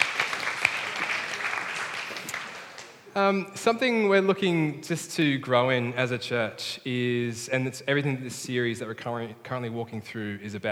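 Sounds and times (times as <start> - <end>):
audience clapping: 0.0 - 3.1
speech: 3.2 - 10.7.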